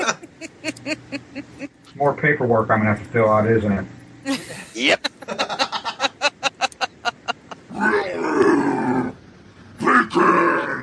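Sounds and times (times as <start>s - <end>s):
laughter: 0.0s - 1.8s, 4.3s - 7.7s
speech: 2.0s - 4.0s, 4.8s - 5.1s
growling: 7.7s - 9.2s, 9.8s - 10.8s.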